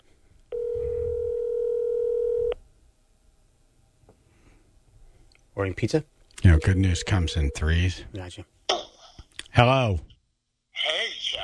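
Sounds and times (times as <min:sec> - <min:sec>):
telephone dial tone: 0:00.5 - 0:02.6
low rumbling: 0:00.7 - 0:01.3
speech: 0:05.6 - 0:08.6, 0:09.6 - 0:10.1.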